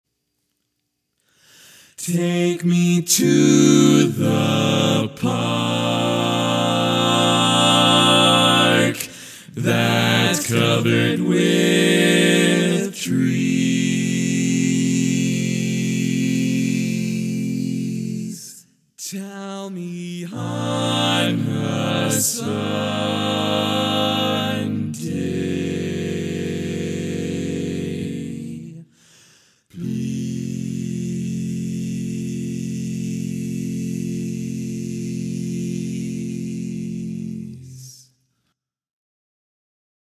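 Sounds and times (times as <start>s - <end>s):
barbershop tags sung by all parts: 2.0s - 29.1s, 29.7s - 38.0s.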